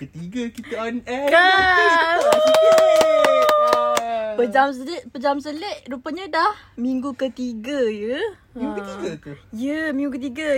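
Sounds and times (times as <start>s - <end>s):
speech: 0.0s - 3.4s, 4.4s - 10.5s
hand clapping: 1.2s - 4.2s.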